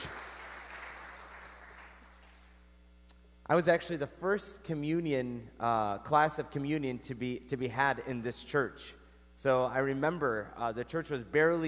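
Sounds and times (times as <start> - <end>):
audience clapping: 0.0 - 2.6
speech: 3.5 - 11.6.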